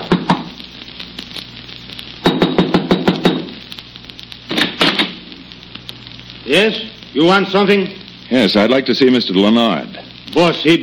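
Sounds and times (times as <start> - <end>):
low hum: 0.0 - 10.8
knocking on a wooden door: 2.2 - 3.4
speech: 6.5 - 10.8.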